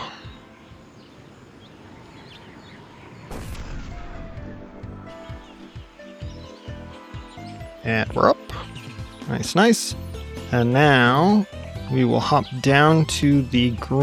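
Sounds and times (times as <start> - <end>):
video game noise: 0.0 - 14.0
rocket launcher rocket jump blast in a video game: 3.2 - 6.1
speech: 7.8 - 8.4, 9.3 - 14.0.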